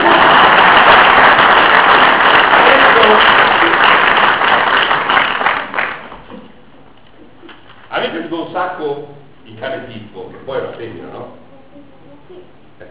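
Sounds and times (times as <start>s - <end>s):
audience clapping at a book presentation: 0.0s - 6.3s
speech: 8.6s - 11.4s.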